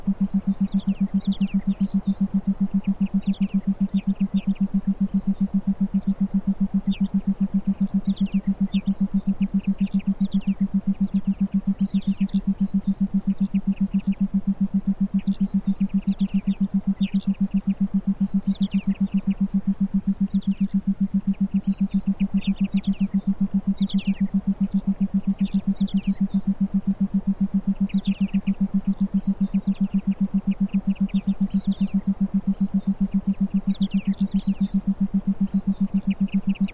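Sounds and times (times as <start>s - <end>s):
forest ambience: 0.0s - 36.7s
theta binaural beats for meditation: 0.0s - 36.7s.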